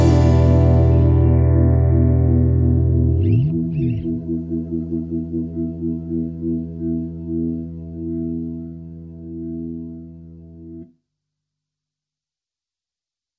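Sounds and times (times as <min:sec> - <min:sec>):
disco funk guitar: 0:00.0 - 0:08.2.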